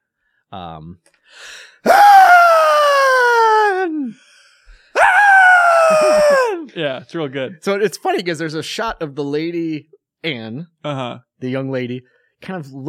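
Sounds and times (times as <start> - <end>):
speech: 0.5 - 2.1, 6.3 - 12.8
man imitating a woman's shrill scream: 1.8 - 4.2, 5.0 - 6.7.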